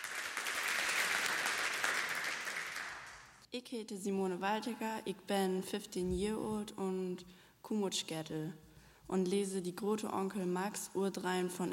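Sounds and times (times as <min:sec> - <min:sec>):
audience applause: 0:00.0 - 0:03.4
speech: 0:03.5 - 0:11.7.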